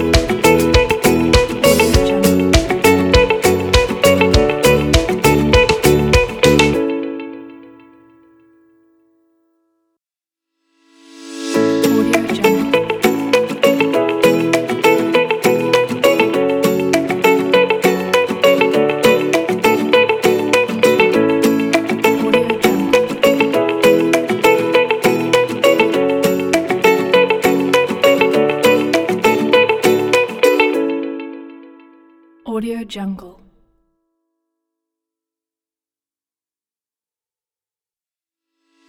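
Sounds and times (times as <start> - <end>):
happy brand logo music: 0.0 - 7.3, 11.1 - 31.1.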